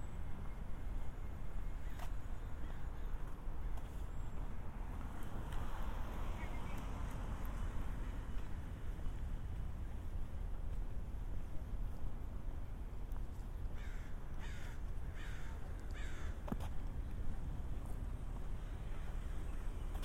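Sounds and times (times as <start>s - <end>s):
traffic rumble in San Diego city streets: 0.0s - 20.0s
crows calling: 13.8s - 16.6s.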